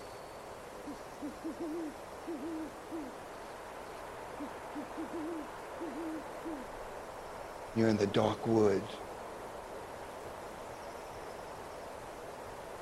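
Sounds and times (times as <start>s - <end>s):
owl hooting: 0.8s - 3.2s, 4.3s - 6.8s
speech: 0.9s - 3.3s, 4.4s - 6.8s, 7.7s - 9.1s.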